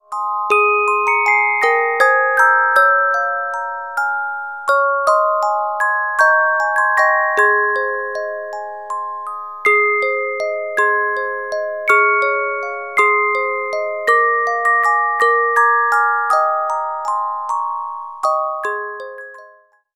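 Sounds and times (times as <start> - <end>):
carillon music box melodies: 0.1 - 19.8.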